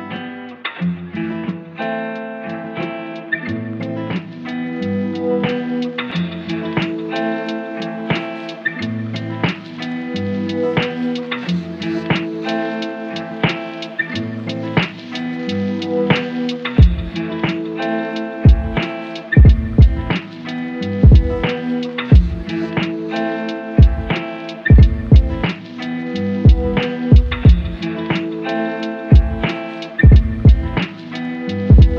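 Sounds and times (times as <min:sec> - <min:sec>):
lofi hip hop lounge beat: 0:00.2 - 0:31.9.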